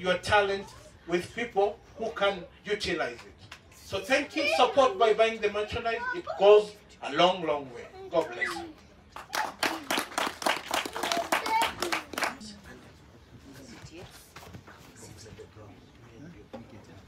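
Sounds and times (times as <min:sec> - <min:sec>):
speech: 0:00.0 - 0:09.6
audience clapping: 0:09.1 - 0:12.5.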